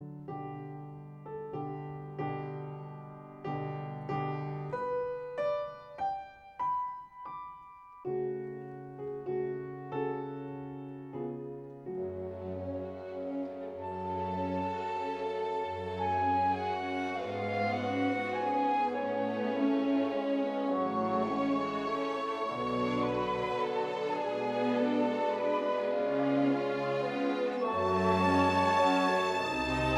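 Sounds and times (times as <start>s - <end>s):
andante piano concerto movement: 0.0s - 29.9s.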